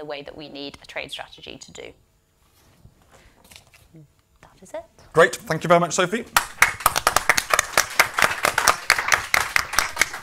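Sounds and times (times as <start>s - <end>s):
speech: 0.0s - 2.0s, 3.9s - 6.7s
audience clapping: 6.3s - 10.2s.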